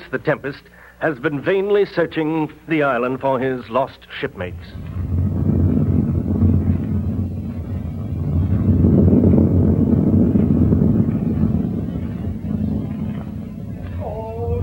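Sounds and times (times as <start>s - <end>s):
speech: 0.1s - 5.2s
stormy wind: 4.2s - 14.6s.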